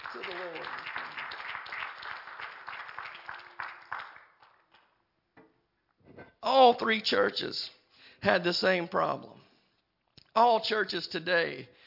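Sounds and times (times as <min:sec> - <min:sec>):
audience clapping hands: 0:00.0 - 0:05.1
speech: 0:06.6 - 0:09.4, 0:10.4 - 0:11.8.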